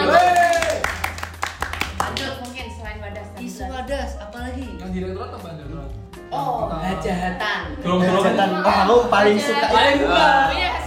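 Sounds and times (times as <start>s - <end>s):
vocal whoop: 0.0s - 0.9s
people clapping: 0.0s - 2.8s
speech: 5.0s - 10.8s.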